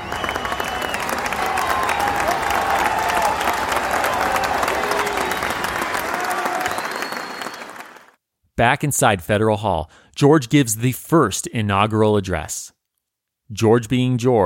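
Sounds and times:
scattered shouts and whistles: 0:00.0 - 0:08.1
large crowd cheering: 0:00.0 - 0:08.2
speech: 0:08.6 - 0:12.7, 0:13.5 - 0:14.4.

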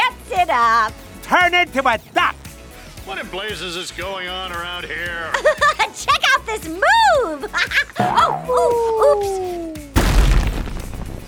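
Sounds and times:
speech: 0:00.5 - 0:02.4, 0:03.1 - 0:09.8
laughter: 0:05.1 - 0:06.1, 0:07.2 - 0:09.6
large vat knocked over with a crash: 0:10.0 - 0:11.2.

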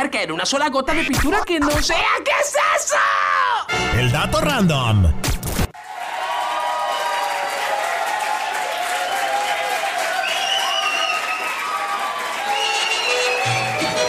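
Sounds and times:
speech: 0:00.0 - 0:05.3
applause, standing ovation: 0:05.8 - 0:14.0.

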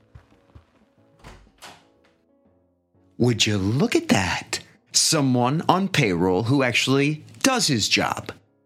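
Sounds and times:
door being opened: 0:00.2 - 0:02.2
speech: 0:03.2 - 0:08.4.

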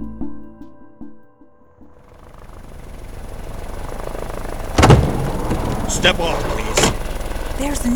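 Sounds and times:
helicopter landing: 0:01.9 - 0:07.9
speech: 0:06.0 - 0:06.5, 0:07.6 - 0:07.9.

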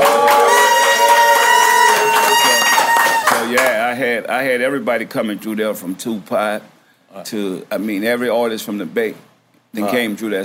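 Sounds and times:
audience cheering with shouts and whoops: 0:00.0 - 0:03.8
speech: 0:04.2 - 0:10.4.

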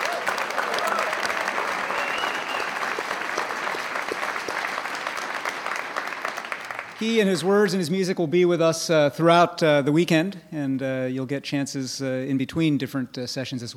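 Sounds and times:
sustained audience applause: 0:00.0 - 0:07.4
speech: 0:07.0 - 0:13.7.

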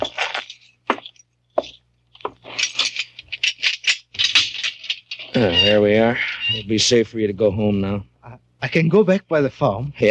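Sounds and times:
keys rattling: 0:00.0 - 0:05.4
speech: 0:05.4 - 0:10.1.

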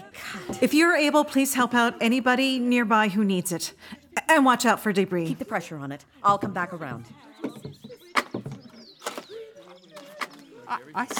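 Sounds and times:
speech: 0:00.6 - 0:07.3, 0:10.7 - 0:11.1
birds chirping outdoors: 0:06.1 - 0:11.1
clattering knocks and thuds: 0:06.3 - 0:08.8.

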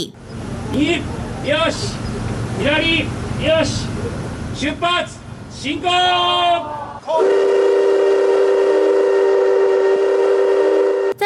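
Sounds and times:
speech: 0:00.0 - 0:07.8
steam locomotive whistle: 0:07.1 - 0:11.2.

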